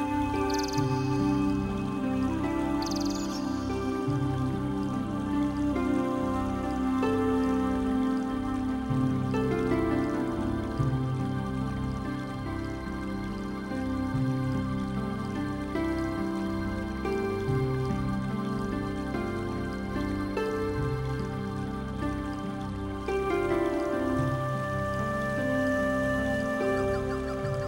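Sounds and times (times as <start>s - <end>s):
new age ethno Asian meditation music: 0.0s - 27.6s.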